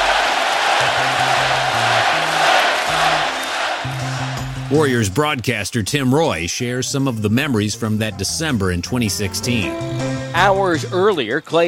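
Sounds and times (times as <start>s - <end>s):
large arena crowd chanting a two-syllable player's name: 0.0s - 4.6s
speech: 4.7s - 11.6s.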